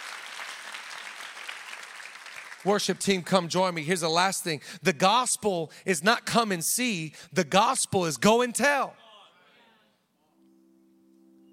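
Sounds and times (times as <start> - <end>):
crowd applause: 0.0 - 3.1
speech: 2.6 - 9.0.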